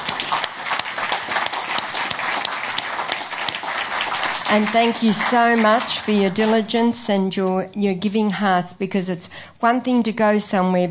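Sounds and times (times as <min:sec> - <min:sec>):
crowd applause: 0:00.0 - 0:06.7
speech: 0:04.5 - 0:10.9.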